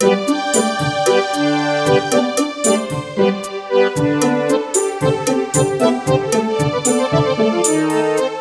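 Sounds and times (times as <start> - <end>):
music: 0.0 - 8.4.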